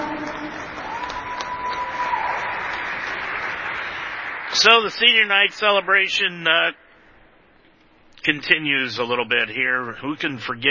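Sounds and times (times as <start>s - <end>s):
audience applause: 0.0s - 5.8s
speech: 4.6s - 6.8s, 8.2s - 10.6s.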